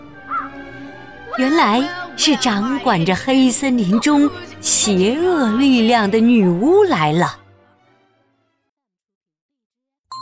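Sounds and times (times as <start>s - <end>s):
crow cawing: 0.2s - 0.8s
speech: 1.4s - 7.4s.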